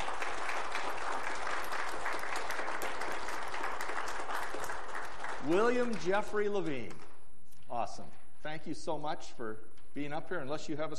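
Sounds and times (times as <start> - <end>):
crowd applauding: 0.0 - 6.9
speech: 5.5 - 7.1, 7.7 - 10.9.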